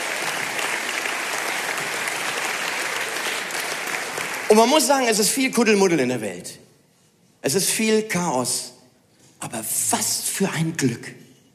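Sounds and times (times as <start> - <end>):
audience applause: 0.0 - 4.9
speech: 4.5 - 6.7, 7.4 - 8.8, 9.4 - 11.2.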